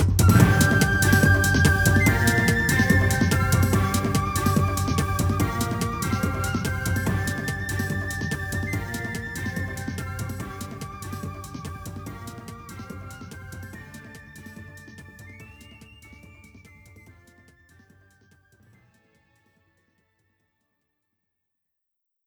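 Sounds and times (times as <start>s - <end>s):
horse racing practice minigame background music: 0.2s - 17.7s.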